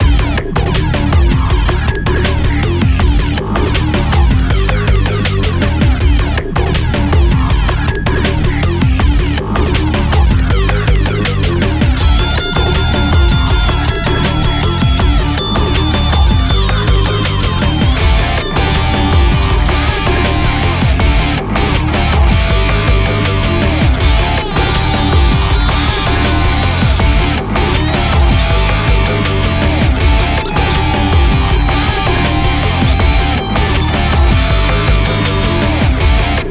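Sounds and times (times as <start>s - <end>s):
neo rock music: 0.0s - 36.5s.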